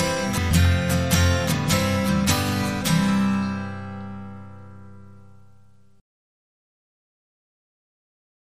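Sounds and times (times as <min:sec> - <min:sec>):
guitar strums: 0:00.0 - 0:06.0.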